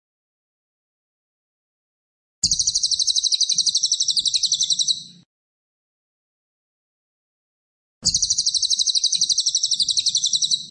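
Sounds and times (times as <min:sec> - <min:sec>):
cililin singing fast shrill pulsed trills: 0:02.4 - 0:05.1, 0:08.0 - 0:10.7.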